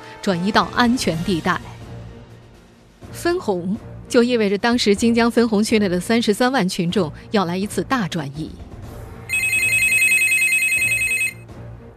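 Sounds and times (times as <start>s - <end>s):
speech: 0.2s - 1.7s, 3.2s - 8.6s
telephone ringing: 9.3s - 11.4s.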